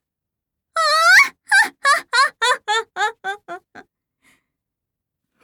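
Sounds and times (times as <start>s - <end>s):
person laughing: 0.8s - 3.8s.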